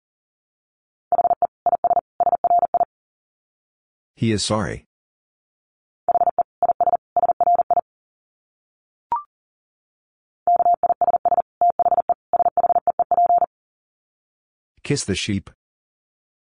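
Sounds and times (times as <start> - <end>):
rapid Morse code dits at 40 wpm: 1.1 - 2.9, 6.1 - 7.8, 10.5 - 13.5
speech: 4.2 - 4.9, 14.9 - 15.6.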